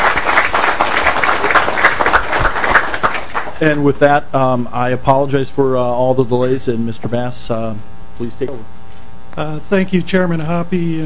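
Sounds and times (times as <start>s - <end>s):
audience applause: 0.0s - 3.6s
speech: 3.6s - 8.8s, 9.4s - 11.0s.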